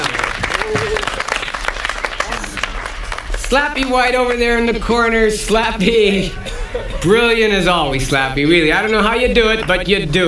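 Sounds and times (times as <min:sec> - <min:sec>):
audience applause: 0:00.0 - 0:04.1
speech: 0:03.5 - 0:10.2
laughter: 0:05.8 - 0:07.7.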